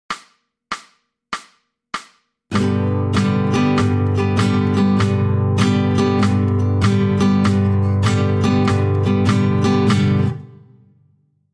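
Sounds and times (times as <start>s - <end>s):
rock music: 2.5s - 10.5s.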